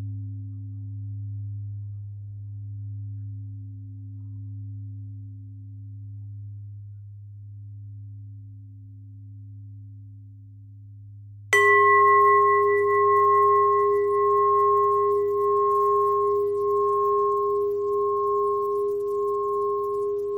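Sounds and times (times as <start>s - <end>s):
bells ringing: 11.6s - 20.3s.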